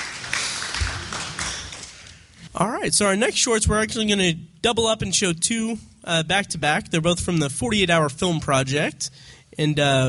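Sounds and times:
audience applause: 0:00.0 - 0:02.1
speech: 0:02.6 - 0:10.0.

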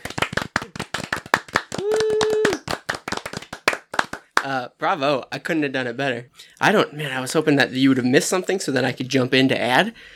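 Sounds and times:
hand clapping applause: 0:00.0 - 0:04.5
speech: 0:04.4 - 0:10.1.

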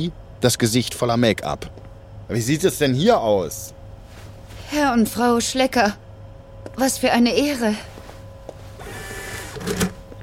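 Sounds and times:
speech: 0:00.0 - 0:03.8, 0:04.7 - 0:06.0, 0:06.6 - 0:07.9, 0:09.6 - 0:09.9
cash register printing a receipt: 0:08.8 - 0:10.0.

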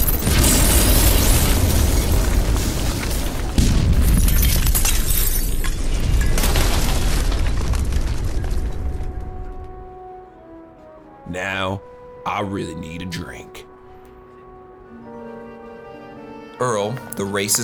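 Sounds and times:
thermal detonator explosion sound effect for a science-fiction audio drama: 0:00.0 - 0:09.8
speech: 0:11.4 - 0:13.6, 0:16.6 - 0:17.6.

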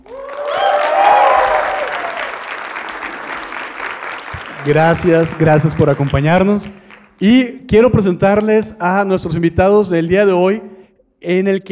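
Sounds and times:
enthusiastic live audience cheering: 0:00.0 - 0:07.2
speech: 0:04.6 - 0:11.6.

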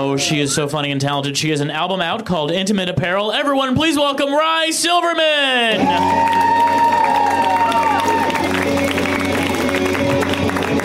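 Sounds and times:
speech: 0:00.0 - 0:07.8
audience at a comedy show applauding and cheering: 0:05.6 - 0:10.8.

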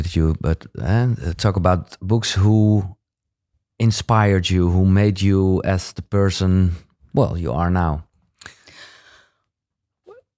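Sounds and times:
speech: 0:00.1 - 0:03.0, 0:03.8 - 0:08.6
person drawing in a breath: 0:08.4 - 0:09.4.

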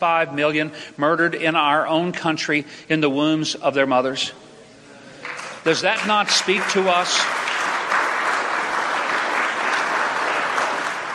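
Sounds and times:
speech: 0:00.0 - 0:04.5, 0:05.6 - 0:07.4
half-hearted applause from a crowd: 0:05.2 - 0:11.1.

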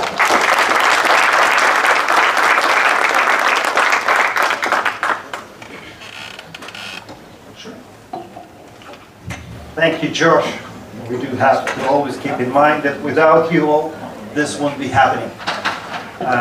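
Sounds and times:
audience applause at a Knesset Christian Allies Caucus event: 0:00.0 - 0:06.4
speech: 0:09.8 - 0:15.4, 0:16.2 - 0:16.4.

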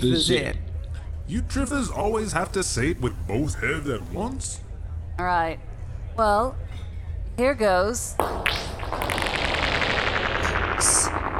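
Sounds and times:
speech: 0:00.0 - 0:00.7, 0:01.3 - 0:04.6, 0:05.2 - 0:06.8, 0:07.4 - 0:09.1
rapid gunfire practice shot: 0:08.2 - 0:11.3.

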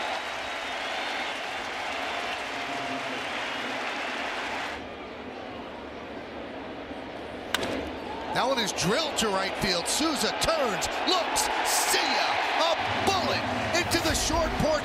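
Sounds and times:
large stadium crowd ovation: 0:00.0 - 0:04.9, 0:08.0 - 0:14.8
speech: 0:08.4 - 0:13.2, 0:13.9 - 0:14.8.

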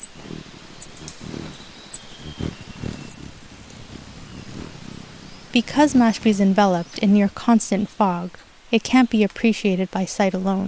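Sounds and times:
black-breasted pufflick hummingbird: 0:00.0 - 0:08.4
speech: 0:05.6 - 0:10.6.

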